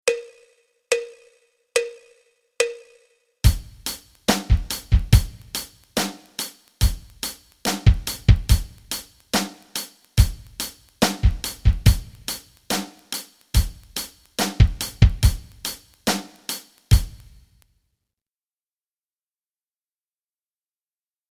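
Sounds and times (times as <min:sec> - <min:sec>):
rock rhythms: 0:03.4 - 0:17.5.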